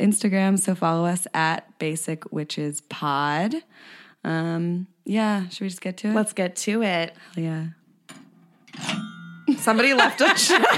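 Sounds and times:
speech: 0:00.0 - 0:07.8, 0:09.5 - 0:10.7
chimes being struck: 0:08.7 - 0:10.2
laughter: 0:09.5 - 0:10.7.

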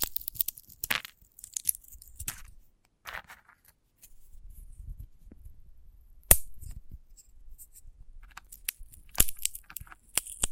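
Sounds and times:
sunflower head crackling tearing and crunching: 0:00.0 - 0:03.8, 0:06.3 - 0:06.8, 0:07.6 - 0:10.5.

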